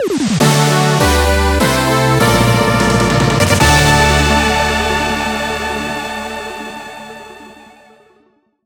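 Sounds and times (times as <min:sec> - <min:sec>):
victory jingle: 0:00.5 - 0:07.6.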